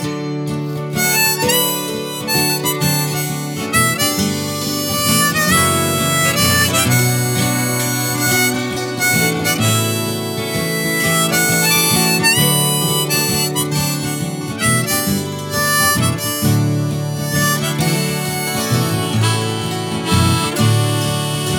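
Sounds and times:
slow waltz music loop: 0.0 - 21.5.

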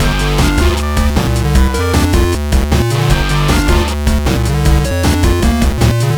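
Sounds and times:
chiptune party music loop: 0.0 - 6.1.

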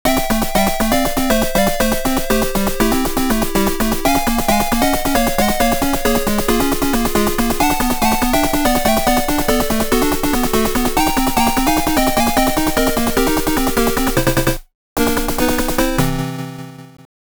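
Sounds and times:
8-bit continue screen game music: 0.0 - 17.1.

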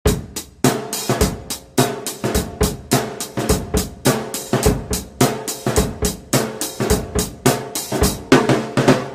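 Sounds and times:
drum: 0.1 - 9.1.

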